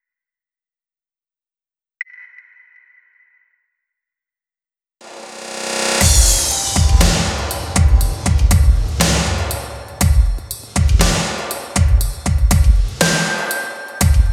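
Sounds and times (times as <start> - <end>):
drums at 120 BPM: 5.1 - 14.3.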